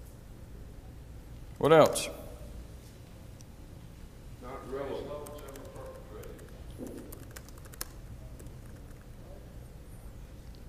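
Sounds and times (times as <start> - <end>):
low steady hum: 0.0 - 10.6
speech: 1.6 - 2.2
typing on a computer keyboard: 5.2 - 9.1.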